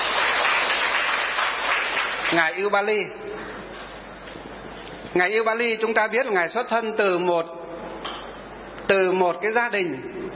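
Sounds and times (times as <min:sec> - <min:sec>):
audience applause: 0:00.0 - 0:02.4
speech: 0:02.3 - 0:03.5, 0:05.2 - 0:07.6, 0:08.9 - 0:10.2.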